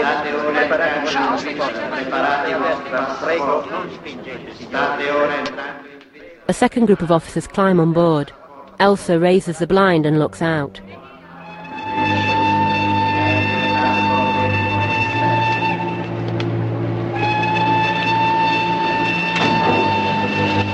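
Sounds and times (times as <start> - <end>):
speech: 0.6 - 5.9, 6.5 - 11.0
train horn blasts: 11.2 - 20.7.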